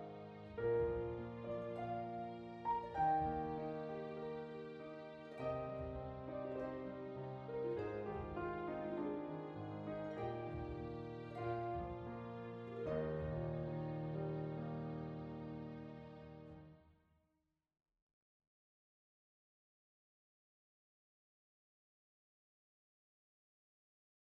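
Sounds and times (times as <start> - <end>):
piano improvisation: 0.0 - 16.7.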